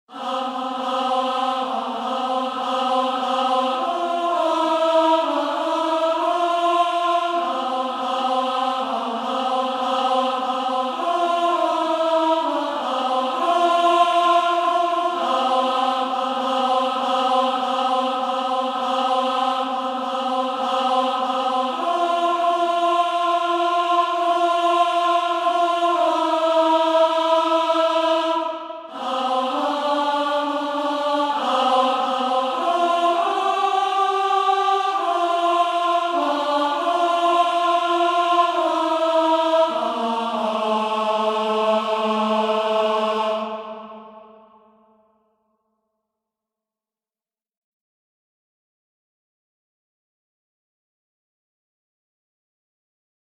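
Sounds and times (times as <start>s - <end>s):
senior choir alto singing: 0.0s - 45.0s.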